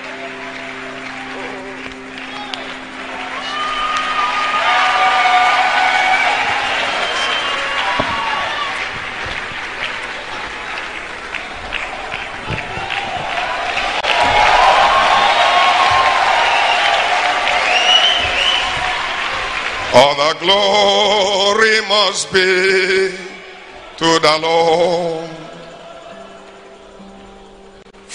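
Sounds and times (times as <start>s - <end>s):
audience cheering with whoops and shouts: 0.0s - 21.6s
audience clapping: 0.0s - 24.5s
speech: 20.0s - 23.2s, 24.0s - 25.2s.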